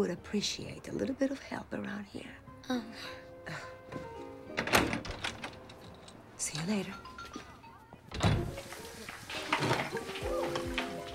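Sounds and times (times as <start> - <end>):
speech: 0.0 - 4.2, 6.4 - 7.1, 9.6 - 10.8
heavy door thumping: 4.6 - 5.9, 8.1 - 8.7.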